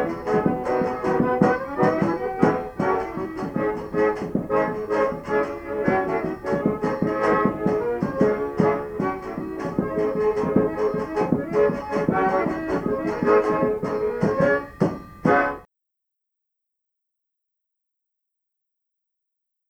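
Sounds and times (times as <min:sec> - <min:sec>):
polka music: 0:00.0 - 0:15.7.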